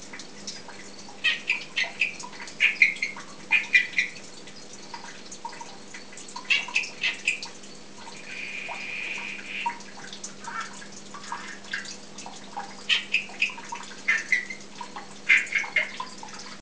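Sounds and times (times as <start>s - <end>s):
Dendropsophus columbianus calling: 1.2s - 4.2s, 6.4s - 7.5s, 8.2s - 11.6s, 12.9s - 14.6s, 15.2s - 16.0s.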